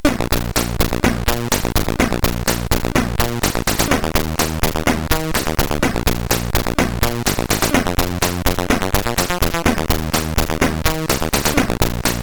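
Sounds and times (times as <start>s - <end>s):
SID chip music on CSG 8580R5: 0.0s - 12.2s.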